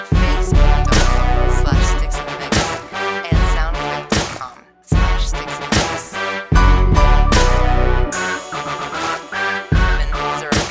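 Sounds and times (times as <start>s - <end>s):
anthem music: 0.1s - 4.1s, 6.4s - 10.5s.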